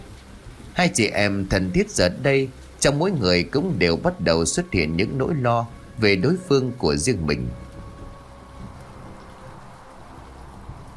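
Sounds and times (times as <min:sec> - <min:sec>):
heavy pouring rain: 0:00.0 - 0:10.9
speech: 0:00.8 - 0:07.7.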